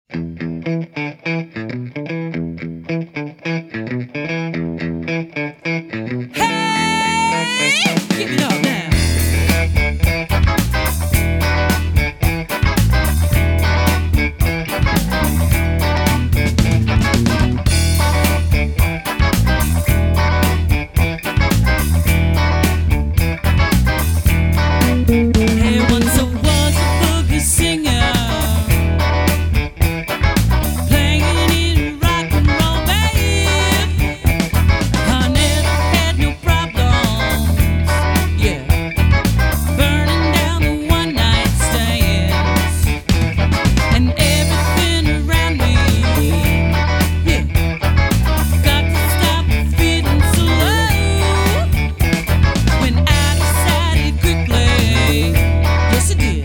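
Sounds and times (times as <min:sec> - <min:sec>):
funky music: 0:00.1 - 0:56.4.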